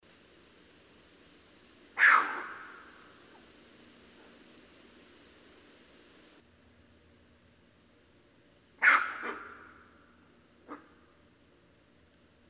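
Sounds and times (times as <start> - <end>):
raccoon: 1.9 - 3.6, 8.8 - 11.3.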